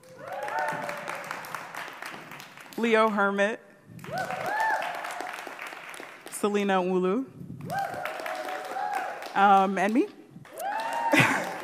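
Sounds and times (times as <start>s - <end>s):
audience cheering: 0.0s - 2.0s, 4.0s - 5.6s, 7.7s - 9.4s, 10.5s - 11.6s
audience applause: 0.0s - 2.8s, 4.0s - 6.3s, 7.6s - 9.7s, 10.5s - 11.6s
speech: 2.8s - 4.5s, 6.4s - 8.0s, 9.4s - 10.2s.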